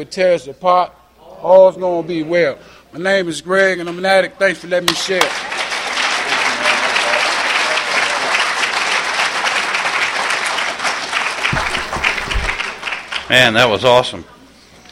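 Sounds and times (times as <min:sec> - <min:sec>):
speech: 0:00.0 - 0:05.5, 0:13.3 - 0:14.4
audience applause: 0:05.1 - 0:13.9.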